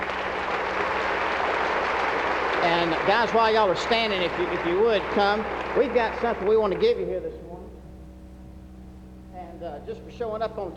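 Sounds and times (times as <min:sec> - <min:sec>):
audience applause for a group of Chick-fil-A operators: 0:00.0 - 0:07.2
speech: 0:02.6 - 0:07.6, 0:09.6 - 0:10.7.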